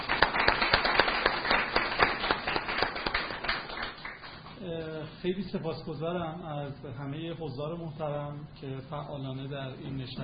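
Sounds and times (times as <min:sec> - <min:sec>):
audience applauding: 0:00.0 - 0:04.5
speech: 0:05.2 - 0:10.2.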